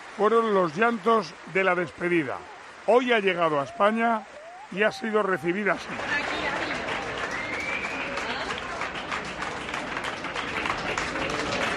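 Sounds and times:
applause at Madrid-Barajas airport arrival: 0.0 - 11.7
speech: 0.2 - 6.2.

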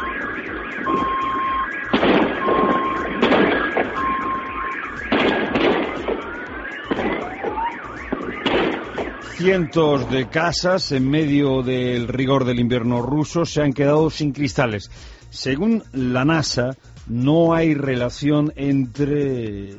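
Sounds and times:
booms from the exploding meteorite over the Urals: 0.0 - 9.3
car alarms wailing and beeping: 0.0 - 13.2
speech: 9.4 - 19.7.

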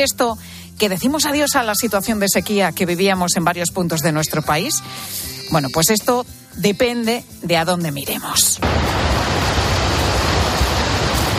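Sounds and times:
speech: 0.0 - 9.0
water gushing from reservoir release: 8.6 - 11.3.

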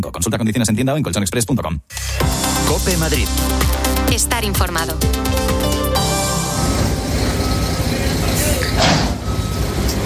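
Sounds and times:
speech: 0.1 - 5.4
construction engines and machinery rumbling at the A5 road tunnel works in Madrid: 5.6 - 10.0.

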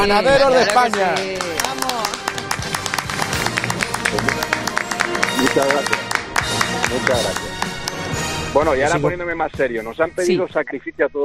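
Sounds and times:
speech: 0.0 - 1.5, 5.4 - 6.0, 6.9 - 7.5, 8.5 - 11.2
applause: 0.4 - 8.3.

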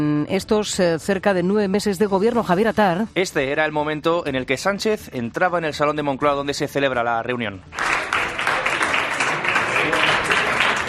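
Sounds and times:
speech: 0.0 - 7.9
ministers applauding: 7.7 - 10.8.

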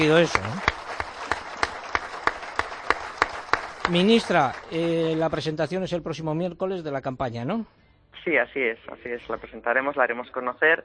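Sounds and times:
speech: 0.0 - 0.8, 3.9 - 10.8
audience rhythmic clapping for Rafa Nadal: 0.0 - 5.7
low hiss: 0.0 - 10.8.

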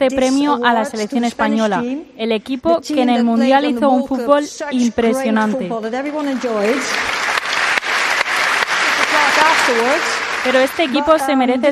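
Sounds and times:
speech: 0.0 - 7.1, 9.7 - 11.7
audience applause: 6.1 - 11.5.

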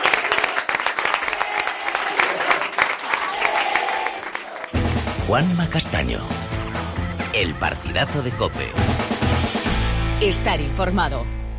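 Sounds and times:
crowd cheering: 0.0 - 6.0
crowd applauding: 0.0 - 7.5
speech: 5.3 - 6.6, 7.4 - 9.5, 10.2 - 11.4.

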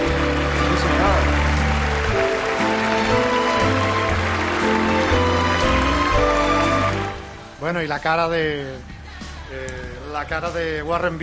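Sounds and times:
standing ovation applause in the Dolby Theater: 0.0 - 7.5
speech: 7.7 - 11.2.

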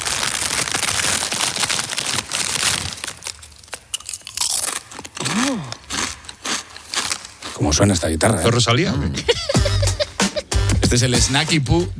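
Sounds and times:
eating potato chips: 0.0 - 8.5
speech: 7.6 - 9.4, 10.9 - 11.9
laughter: 9.0 - 10.6.

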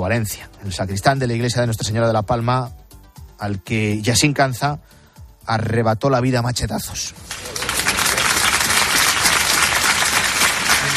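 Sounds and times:
speech: 0.0 - 2.8, 3.4 - 7.6
neighbours of Algeciras applauding after a funeral: 7.2 - 10.9.

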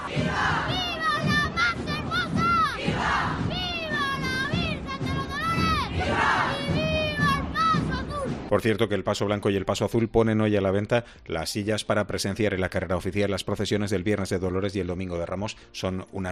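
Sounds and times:
children yelling: 0.0 - 8.3
street crowd cheering and chanting at a festival procession: 0.0 - 8.5
speech: 8.5 - 16.2.

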